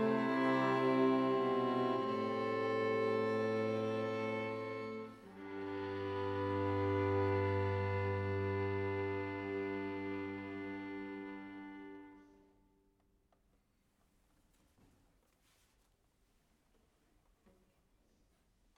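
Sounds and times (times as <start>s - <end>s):
string quartet: 0.0s - 12.6s.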